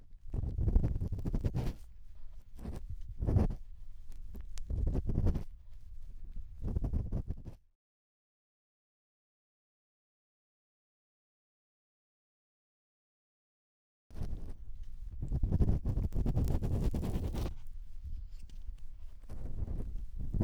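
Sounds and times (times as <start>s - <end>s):
bamboo ear pick scraping deep inside right ear: 0.1s - 7.5s, 14.1s - 20.4s.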